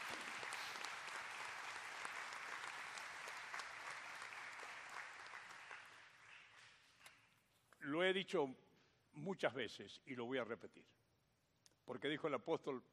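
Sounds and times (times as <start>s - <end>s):
audience applause of welcome: 0.0s - 6.8s
speech: 7.9s - 8.6s, 9.2s - 11.0s, 11.9s - 12.9s.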